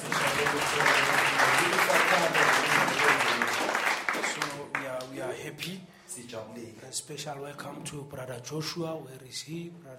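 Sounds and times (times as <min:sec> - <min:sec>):
audience applause: 0:00.0 - 0:05.1
speech: 0:06.9 - 0:09.9.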